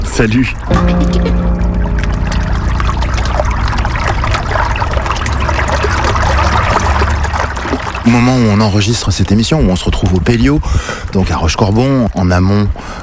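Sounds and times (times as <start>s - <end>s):
Loire water trickling and splashing: 0.0s - 13.0s
speech: 0.2s - 1.5s, 8.0s - 13.0s
Loire river flowing at Rochecorbon upstream of Tours on a frosty winter day: 2.4s - 8.6s.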